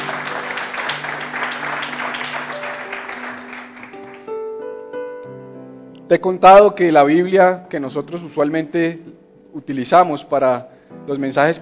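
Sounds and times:
audience clapping: 0:00.0 - 0:04.4
sustained keyboard chords: 0:00.0 - 0:11.6
speech: 0:06.1 - 0:11.6.

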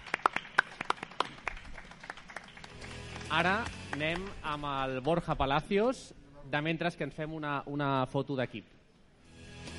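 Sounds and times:
audience applause: 0:00.0 - 0:04.8
speech: 0:03.3 - 0:08.8.

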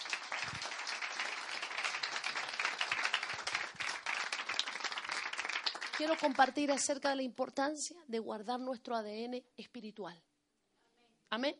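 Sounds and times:
audience applause: 0:00.0 - 0:06.5
speech: 0:06.0 - 0:10.3, 0:11.3 - 0:11.5.

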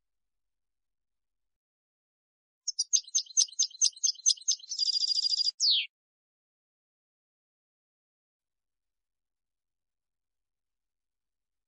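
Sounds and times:
European goldfinch twittering: 0:02.7 - 0:05.9.

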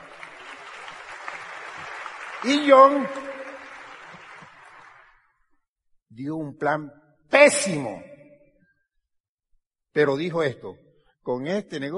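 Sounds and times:
audience applause: 0:00.0 - 0:05.4
speech: 0:02.4 - 0:03.4, 0:06.2 - 0:08.1, 0:10.0 - 0:11.9.

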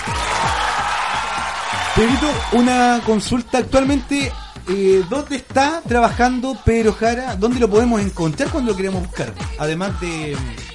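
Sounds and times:
applause sound effect: 0:00.0 - 0:03.1
cheering sound effect: 0:00.0 - 0:03.4
speech: 0:02.0 - 0:10.7.

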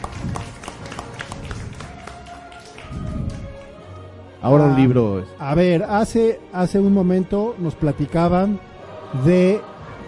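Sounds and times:
applause: 0:00.0 - 0:03.9
speech: 0:04.4 - 0:09.7.

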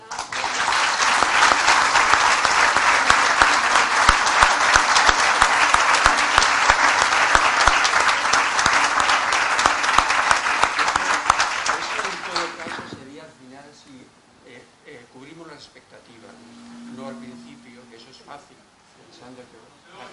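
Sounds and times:
audience applause: 0:00.0 - 0:13.0.

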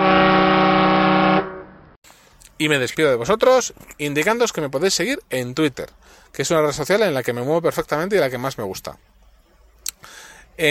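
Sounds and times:
ship horn blast: 0:00.0 - 0:02.0
speech: 0:02.6 - 0:09.1.

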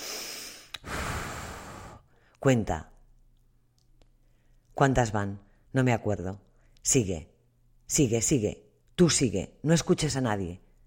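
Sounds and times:
rescue breaths blown during CPR: 0:00.0 - 0:02.4
speech: 0:02.4 - 0:02.9, 0:04.8 - 0:07.3, 0:07.9 - 0:10.6.

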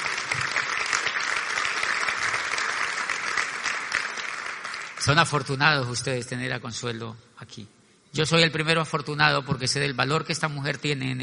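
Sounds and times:
loud audience applause: 0:00.0 - 0:05.2
speech: 0:05.0 - 0:11.2.

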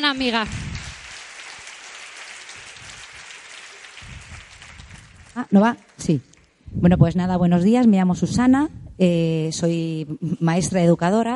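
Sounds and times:
audience applause: 0:00.0 - 0:06.0
speech: 0:00.1 - 0:00.7, 0:05.4 - 0:11.3.

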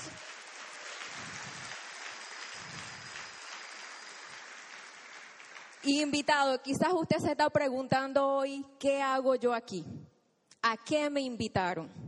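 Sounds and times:
audience applause for guests: 0:00.0 - 0:06.1
speech: 0:05.8 - 0:10.0, 0:10.6 - 0:12.0.

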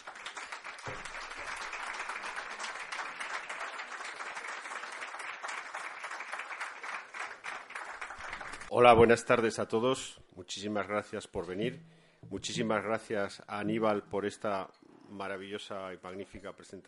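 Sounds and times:
audience applause: 0:00.0 - 0:08.7
speech: 0:08.7 - 0:16.8.

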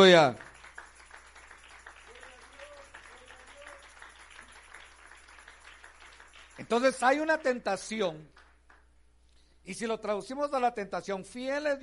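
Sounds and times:
speech: 0:00.0 - 0:00.5, 0:06.6 - 0:08.3, 0:09.6 - 0:11.8
audience applauding: 0:00.0 - 0:07.5.

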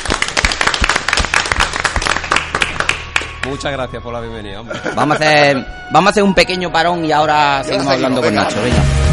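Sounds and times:
audience applause: 0:00.0 - 0:03.6
speech: 0:03.4 - 0:09.0
laughter: 0:04.6 - 0:05.7.

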